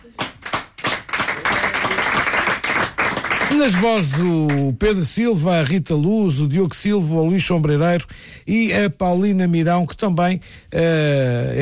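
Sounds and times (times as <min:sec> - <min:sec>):
crowd applause: 0:00.0 - 0:04.6
speech: 0:03.6 - 0:11.6.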